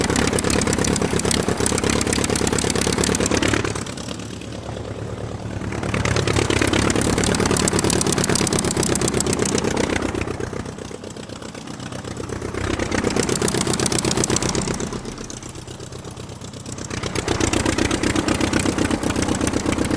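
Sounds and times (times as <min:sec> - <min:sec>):
aircraft motor running: 0:00.0 - 0:19.9.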